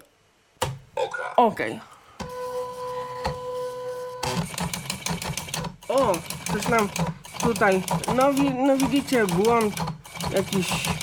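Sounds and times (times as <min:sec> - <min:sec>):
speech: 0:01.1 - 0:01.9, 0:05.9 - 0:11.0
printer printing on an inserted card: 0:02.2 - 0:11.0.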